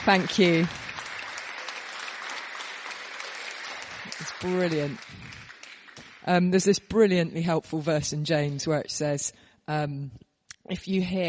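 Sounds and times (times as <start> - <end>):
speech: 0.0 - 0.8, 4.4 - 5.2, 6.3 - 11.2
audience applause: 0.0 - 6.3.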